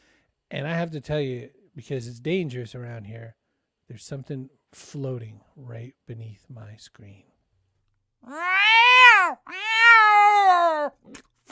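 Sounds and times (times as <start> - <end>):
speech: 0.5 - 7.3, 8.2 - 9.6, 10.8 - 11.3
cat meowing: 8.2 - 11.0.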